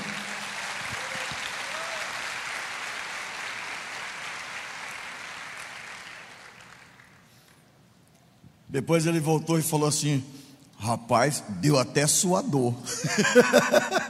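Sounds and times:
crowd cheer: 0:00.0 - 0:04.0
audience applause: 0:00.0 - 0:07.4
speech: 0:08.7 - 0:14.0
laughter: 0:12.9 - 0:14.0.

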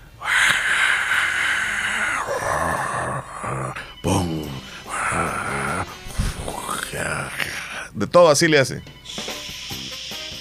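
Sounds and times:
voice imitating falling rain with a breathy hiss: 0:00.2 - 0:07.9
speech: 0:08.0 - 0:09.0.

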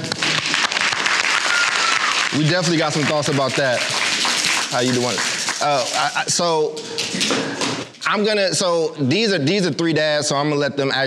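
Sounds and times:
applause: 0:00.0 - 0:06.3
speech: 0:02.3 - 0:04.0, 0:04.7 - 0:11.0.

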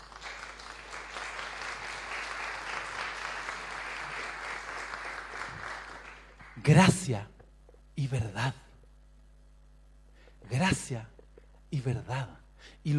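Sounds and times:
audience applause: 0:00.0 - 0:06.6
speech: 0:06.6 - 0:07.4, 0:08.0 - 0:08.6, 0:10.5 - 0:11.1, 0:11.7 - 0:12.9.

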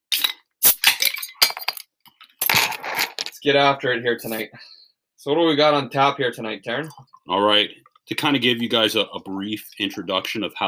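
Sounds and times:
beer being cracked open: 0:00.1 - 0:01.5
speech: 0:03.4 - 0:10.6.

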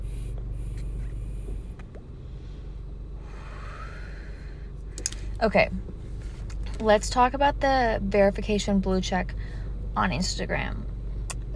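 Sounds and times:
long draw of breath through a vape cartridge: 0:00.0 - 0:04.7
low rumble: 0:00.0 - 0:11.5
speech: 0:05.4 - 0:06.0, 0:06.8 - 0:10.9.

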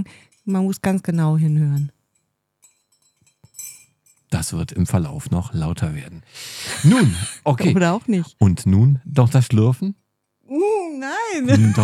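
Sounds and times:
speech: 0:00.0 - 0:02.0, 0:04.3 - 0:11.8
spoon stirring tea in a porcelain cup: 0:01.4 - 0:04.3
laughter: 0:06.6 - 0:07.8, 0:11.3 - 0:11.8.

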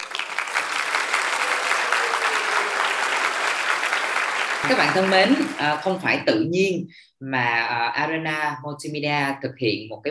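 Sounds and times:
audience applause welcoming guests: 0:00.0 - 0:06.1
speech: 0:04.6 - 0:10.0.

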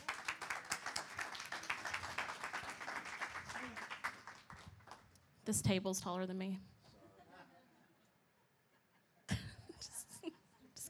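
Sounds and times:
audience applause welcoming a speaker: 0:00.0 - 0:05.0
speech: 0:05.5 - 0:06.7.

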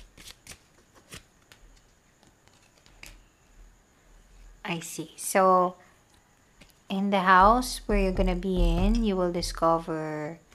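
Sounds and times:
playing cards shuffled for a spirit card reading: 0:00.0 - 0:03.3
speech: 0:04.7 - 0:05.8, 0:06.9 - 0:10.4.

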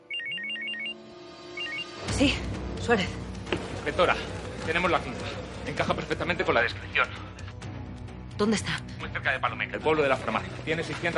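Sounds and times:
mobile phone ringing: 0:00.0 - 0:02.1
speech: 0:02.2 - 0:03.2, 0:03.9 - 0:07.3, 0:08.4 - 0:11.1.

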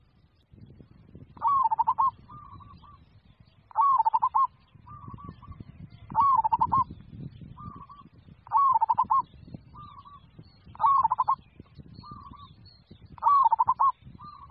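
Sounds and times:
zebra dove cooing: 0:01.4 - 0:02.8, 0:03.7 - 0:05.5, 0:06.1 - 0:06.9, 0:07.6 - 0:09.2, 0:10.8 - 0:11.4, 0:13.2 - 0:14.5.

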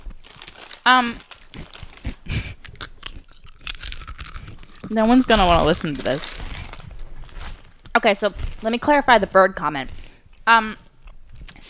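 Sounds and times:
crinkling: 0:00.0 - 0:11.6
eating crunchy chips: 0:00.1 - 0:08.9
speech: 0:00.8 - 0:01.3, 0:04.9 - 0:06.4, 0:08.0 - 0:10.8.

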